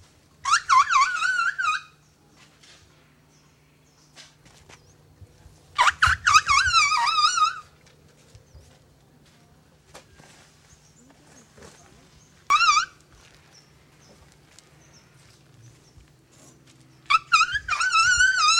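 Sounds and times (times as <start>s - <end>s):
Asian elephant giving loud rough calls in Thailand: 0.4s - 2.0s, 5.8s - 7.7s, 12.5s - 13.0s, 16.4s - 18.5s.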